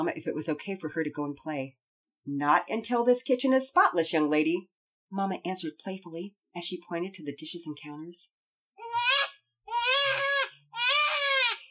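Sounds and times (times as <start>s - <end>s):
speech: 0.0s - 8.4s
babies squalling: 8.8s - 11.6s.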